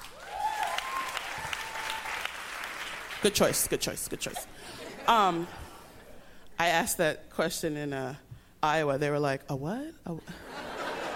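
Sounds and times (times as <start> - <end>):
audience applause: 0.0 - 3.2
scattered whoops: 0.2 - 2.2
speech: 3.2 - 5.6, 6.6 - 10.5.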